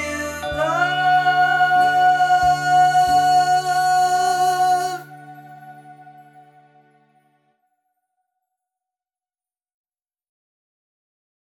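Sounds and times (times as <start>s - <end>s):
person singing: 0.0s - 6.8s.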